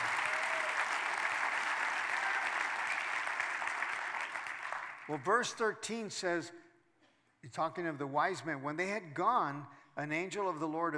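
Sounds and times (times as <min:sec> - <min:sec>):
church congregation clapping: 0:00.0 - 0:05.5
speech: 0:05.1 - 0:06.6, 0:07.4 - 0:10.9.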